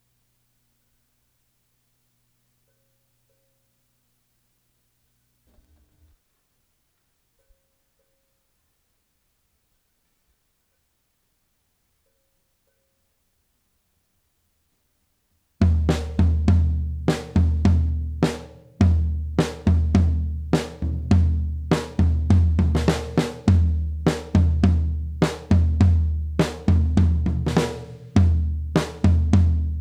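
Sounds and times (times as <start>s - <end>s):
floor tom drum: 15.6s - 29.7s.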